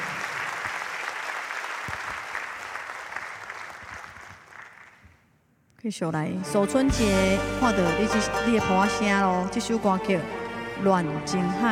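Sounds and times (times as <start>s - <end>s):
crowd applauding: 0.0s - 5.0s
speech: 5.8s - 11.7s.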